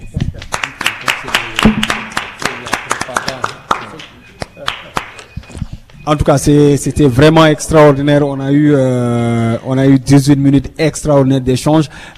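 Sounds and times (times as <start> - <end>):
audience applause: 0.5 - 5.1
speech: 6.1 - 12.1.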